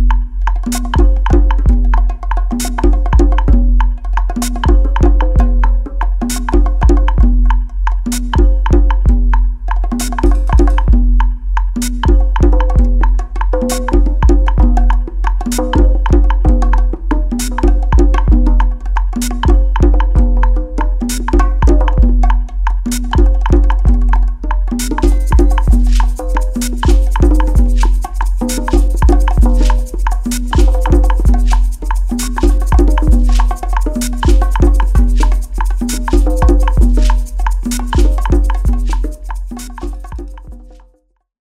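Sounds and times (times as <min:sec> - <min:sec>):
bongos: 0:00.0 - 0:41.0
conga: 0:00.0 - 0:41.2
shekere rattling: 0:24.8 - 0:40.5
bells: 0:25.0 - 0:27.2.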